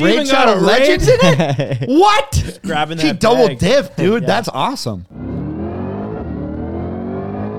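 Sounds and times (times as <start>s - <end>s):
laughter: 0.0s - 4.9s
speech: 0.0s - 5.3s
Corvette Stingray V8 engine revving: 5.1s - 7.5s.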